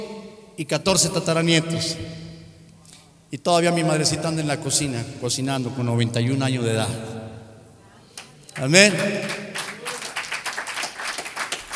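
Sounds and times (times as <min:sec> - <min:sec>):
speech: 0:00.6 - 0:02.2, 0:03.3 - 0:07.2, 0:08.6 - 0:09.4
audience applause: 0:08.5 - 0:11.7.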